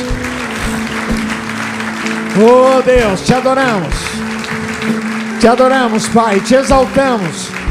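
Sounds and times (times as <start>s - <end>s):
audience applauding: 0.0s - 7.6s
speech: 2.4s - 4.0s, 4.8s - 7.6s.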